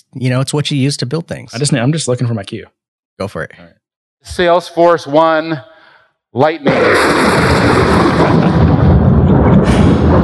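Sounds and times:
speech: 0.1 - 5.7, 6.3 - 8.6
distant storm thunder: 6.7 - 10.2.

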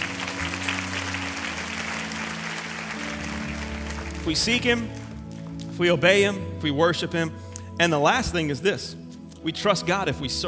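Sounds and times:
audience clapping: 0.0 - 5.7
speech: 4.2 - 5.0, 5.8 - 10.4.

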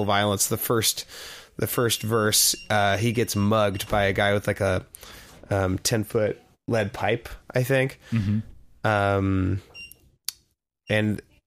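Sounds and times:
speech: 0.0 - 9.7, 10.9 - 11.3
electronic door lock beeping: 1.9 - 4.3.

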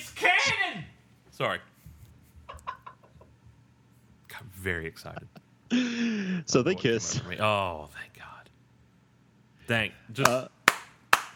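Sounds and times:
speech: 1.4 - 1.7, 4.6 - 8.3, 9.7 - 10.6
slow clap: 10.2 - 11.3.

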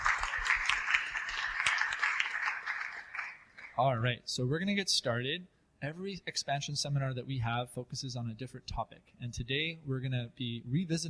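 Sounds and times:
audience applause: 0.0 - 3.8
speech: 3.8 - 11.0.

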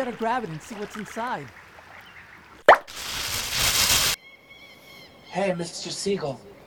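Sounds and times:
speech: 0.0 - 1.6, 5.3 - 6.6
rush of ocean water splashing: 0.0 - 4.2
bottle dropping into the ocean: 2.6 - 3.2.

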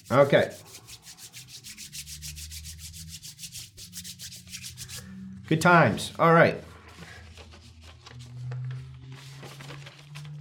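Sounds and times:
hands rubbing together with sanitizer: 0.0 - 5.1
speech: 0.1 - 0.8, 5.5 - 6.7.

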